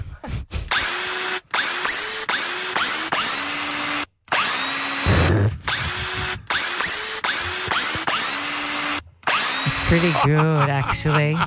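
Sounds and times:
power tool playing a song's melody: 0.8 - 11.4
laughter: 9.7 - 11.4
speech: 9.9 - 11.4.

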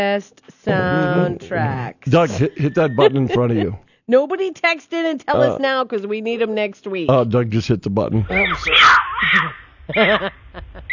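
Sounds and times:
speech: 0.0 - 10.9
laughter: 2.1 - 3.8, 8.2 - 10.9
mountain lion screaming: 8.2 - 9.7.

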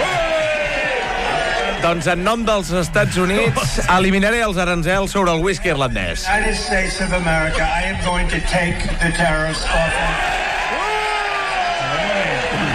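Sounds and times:
crowd cheering and shouting with joy: 0.0 - 4.1, 9.3 - 12.7
speech: 1.8 - 10.4.

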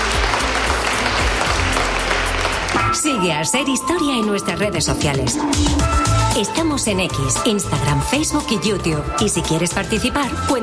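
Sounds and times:
audience applause: 0.0 - 3.0
speech: 3.0 - 10.6.

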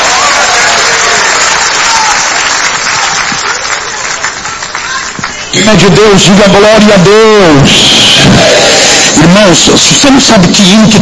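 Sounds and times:
church audience applauding: 0.0 - 6.1
speech: 5.6 - 8.6, 9.2 - 11.0.

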